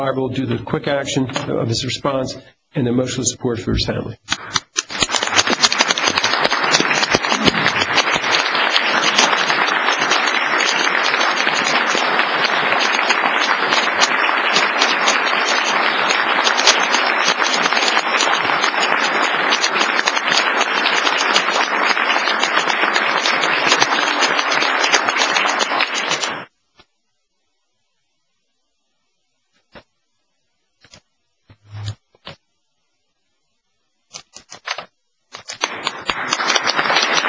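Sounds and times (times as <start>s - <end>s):
speech: 0.0s - 4.6s
crowd applauding: 4.4s - 26.5s, 35.6s - 37.2s.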